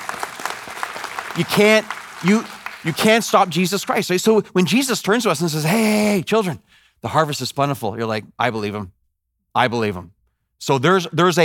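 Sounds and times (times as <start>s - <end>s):
church congregation clapping during a sermon: 0.0s - 4.4s
speech: 1.4s - 9.0s, 9.6s - 11.4s
loud tonal voice calling out: 5.6s - 6.4s.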